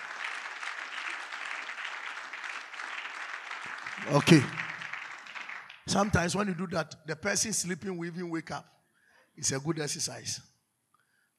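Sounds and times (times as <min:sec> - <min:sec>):
audience clapping hands: 0:00.0 - 0:06.6
speech: 0:04.0 - 0:04.6, 0:05.9 - 0:08.8, 0:09.4 - 0:10.5.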